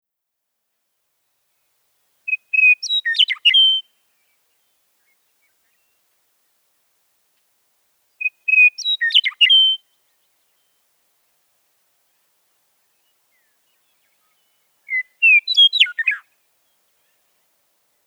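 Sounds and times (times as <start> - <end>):
meadowlark chatter with harsh buzzy notes: 2.3 - 3.8, 8.2 - 9.8, 13.3 - 16.3.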